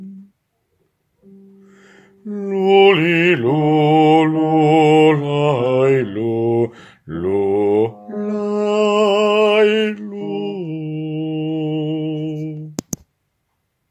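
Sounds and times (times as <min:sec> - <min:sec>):
bass lullaby: 0:01.2 - 0:12.8.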